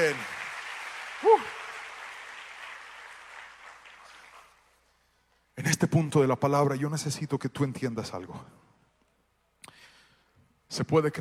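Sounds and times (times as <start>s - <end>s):
audience applause: 0.0s - 4.8s
speech: 0.1s - 0.3s, 5.8s - 8.6s, 10.7s - 11.1s.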